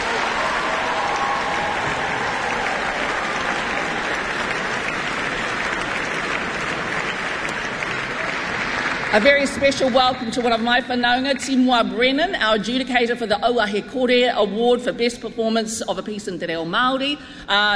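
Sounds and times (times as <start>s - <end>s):
audience applause: 0.0s - 10.4s
speech: 9.2s - 17.7s.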